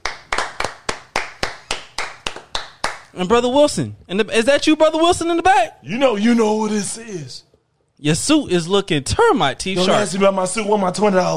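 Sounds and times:
audience hand clapping: 0.0s - 3.2s
speech: 3.1s - 11.3s.

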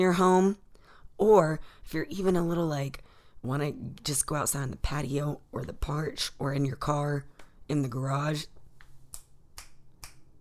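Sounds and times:
speech: 0.0s - 0.6s, 1.2s - 8.6s
finger snaps: 9.1s - 10.3s.

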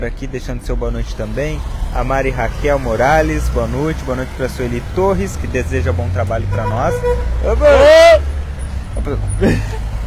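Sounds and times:
speech: 0.0s - 8.3s, 9.0s - 9.8s
car horn honking: 6.4s - 7.8s.

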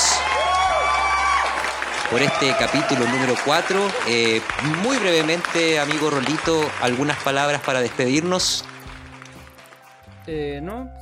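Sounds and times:
cheering: 0.0s - 8.5s
applause: 0.0s - 10.3s
speech: 2.1s - 8.7s, 10.3s - 11.0s.

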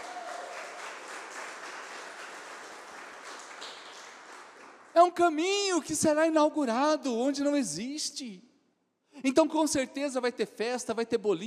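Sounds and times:
audience applause: 0.0s - 4.9s
speech: 5.0s - 8.5s, 9.2s - 11.4s.

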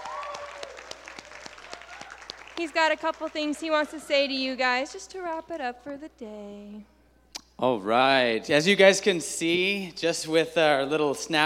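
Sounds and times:
audience applause: 0.0s - 4.4s
speech: 2.6s - 6.9s, 7.6s - 11.4s.

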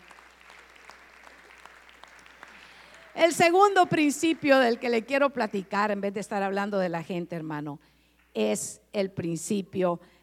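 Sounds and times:
audience applause: 0.0s - 5.7s
speech: 3.2s - 10.2s.

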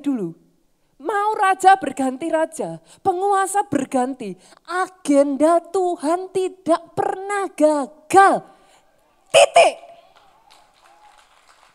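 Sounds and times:
speech: 0.0s - 0.4s, 1.0s - 8.5s, 9.3s - 9.8s
audience clapping half-heartedly: 9.9s - 11.7s.

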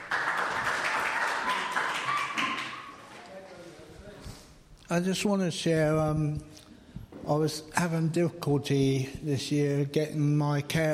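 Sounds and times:
round of applause: 0.0s - 3.1s
speech: 4.9s - 6.6s, 7.3s - 10.9s.

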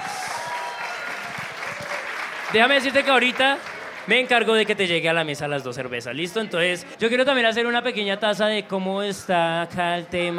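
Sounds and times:
audience applause: 0.0s - 5.1s
speech: 2.5s - 10.3s.

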